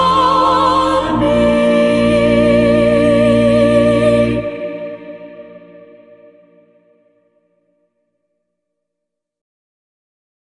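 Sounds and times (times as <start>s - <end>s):
a cappella singing: 0.0s - 6.6s.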